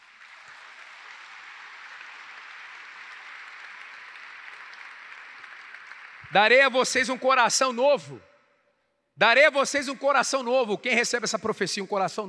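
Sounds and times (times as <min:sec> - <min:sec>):
audience applauding: 0:00.0 - 0:07.4
speech: 0:06.3 - 0:08.3, 0:09.2 - 0:12.2.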